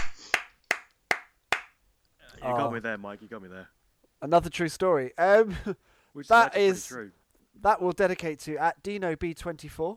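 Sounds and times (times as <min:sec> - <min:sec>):
sharp hand claps: 0:00.0 - 0:01.8
speech: 0:02.4 - 0:09.9.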